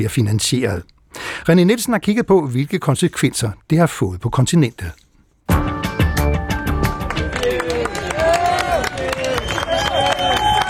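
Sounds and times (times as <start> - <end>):
speech: 0.0 - 5.0
crowd clapping for departing staff: 6.6 - 10.6
cheers: 7.0 - 10.6.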